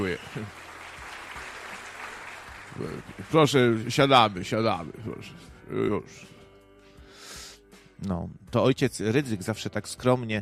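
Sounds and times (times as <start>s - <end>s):
audience applause: 0.0s - 4.2s
speech: 0.1s - 0.6s, 2.8s - 6.4s, 8.0s - 10.4s.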